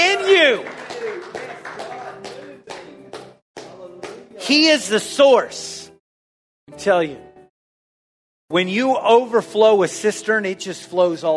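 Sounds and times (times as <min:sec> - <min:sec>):
audience clapping hands: 0:00.0 - 0:04.3
speech: 0:04.5 - 0:05.8, 0:06.7 - 0:07.3, 0:08.5 - 0:11.3.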